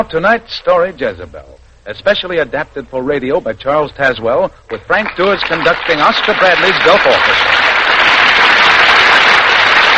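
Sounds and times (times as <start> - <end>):
speech: 0.0 - 7.5
studio audience applause as radio play stars enter: 4.7 - 9.9.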